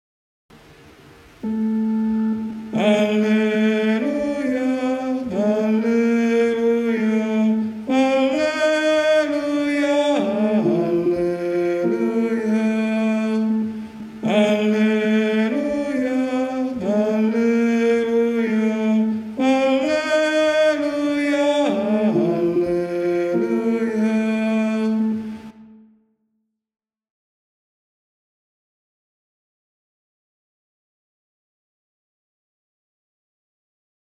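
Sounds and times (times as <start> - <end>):
sopranos singing an alleluia: 1.4 - 25.8.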